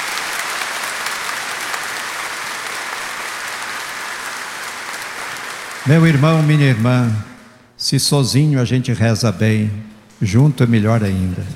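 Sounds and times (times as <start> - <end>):
congregation applauding pilgrims of Our Lady at a Catholic celebration: 0.0 - 7.8
speech: 5.8 - 11.5.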